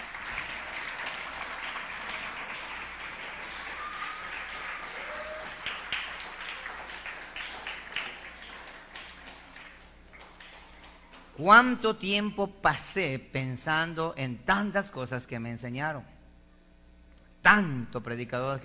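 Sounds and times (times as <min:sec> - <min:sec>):
audience applauding: 0:00.0 - 0:11.4
person whooping: 0:03.5 - 0:06.8
speech: 0:11.4 - 0:16.1, 0:17.4 - 0:18.6.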